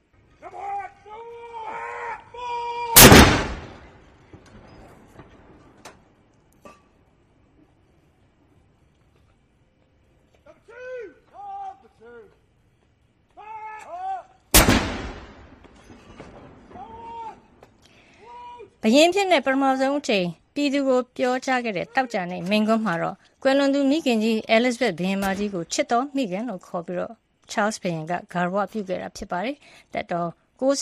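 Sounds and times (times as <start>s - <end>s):
62-gun royal salute fired from the Tower of London for King Charles's accession: 3.0s - 4.4s, 14.5s - 16.8s
speech: 18.8s - 30.8s.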